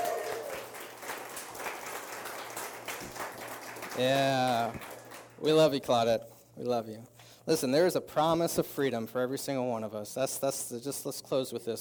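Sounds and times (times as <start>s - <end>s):
audience applause: 0.0s - 5.3s
speech: 4.0s - 11.8s.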